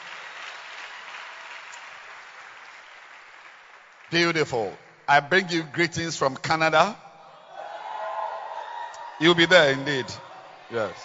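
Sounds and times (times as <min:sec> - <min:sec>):
audience clapping hands: 0:00.0 - 0:06.0
speech: 0:04.1 - 0:07.0, 0:09.2 - 0:11.0.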